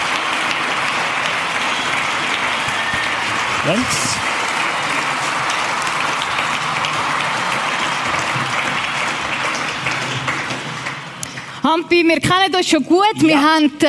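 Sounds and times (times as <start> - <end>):
thunderous audience applause welcoming two guests: 0.0 - 11.6
speech: 3.7 - 4.3, 11.7 - 13.8.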